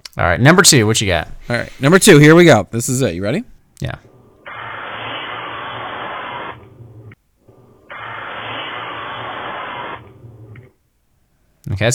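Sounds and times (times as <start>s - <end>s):
speech: 0.2s - 4.1s, 11.8s - 11.9s
bug spray hissing from an aerosol can: 4.4s - 6.7s, 7.9s - 10.3s.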